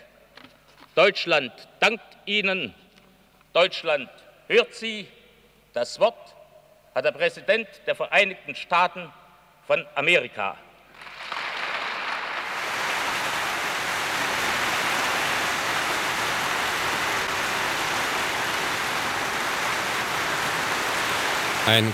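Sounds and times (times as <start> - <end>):
speech: 1.0 - 2.8, 3.6 - 5.2, 5.8 - 6.4, 7.0 - 11.1, 21.6 - 21.9
enthusiastic applause of standing audience: 10.9 - 21.9.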